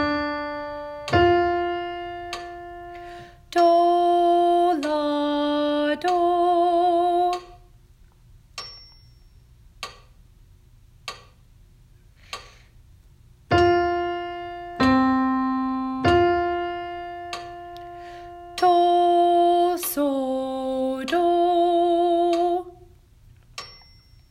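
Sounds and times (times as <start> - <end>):
alto sight reading patterns: 0.0 - 7.4, 13.5 - 22.7.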